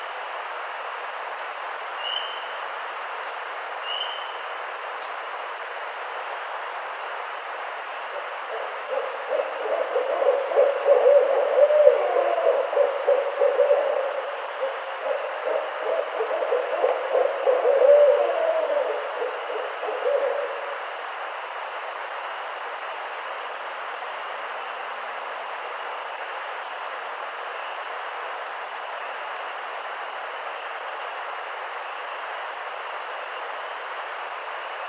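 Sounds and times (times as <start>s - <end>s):
Barred Owl calling: 2.0s - 2.5s, 3.8s - 4.4s, 8.1s - 21.0s.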